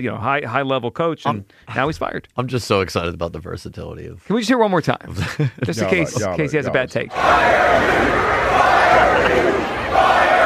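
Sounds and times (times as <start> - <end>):
speech: 0.0 - 10.2
laughter: 5.1 - 7.0, 8.4 - 10.4
crowd chanting: 7.1 - 10.4.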